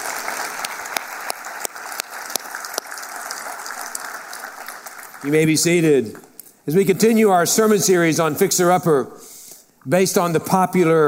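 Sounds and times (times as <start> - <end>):
church congregation clapping for mothers on Mother's Day: 0.0 - 7.9
speech: 5.2 - 11.0.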